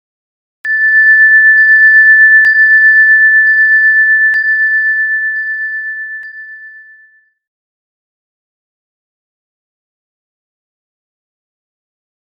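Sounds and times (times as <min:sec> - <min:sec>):
chimes: 0:00.7 - 0:07.5.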